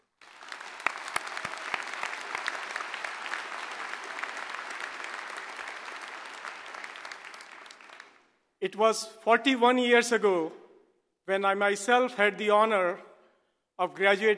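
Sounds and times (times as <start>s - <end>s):
crowd applauding: 0.0s - 8.4s
speech: 8.6s - 10.6s, 11.3s - 13.1s, 13.8s - 14.3s.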